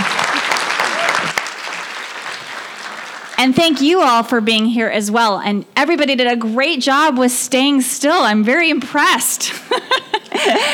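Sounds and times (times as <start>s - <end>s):
audience applause: 0.0s - 3.4s
speech: 3.4s - 10.7s.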